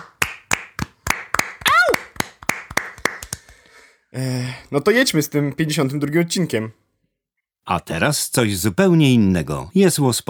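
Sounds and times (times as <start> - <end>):
hand claps in an even rhythm: 0.0 - 3.7
rising-and-falling vocal whoop: 1.6 - 2.1
speech: 4.1 - 6.8, 7.7 - 10.2.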